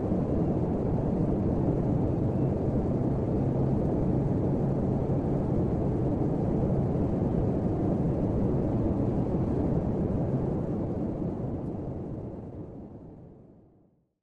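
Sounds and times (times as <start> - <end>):
airplane white noise during flight: 0.0 - 13.4.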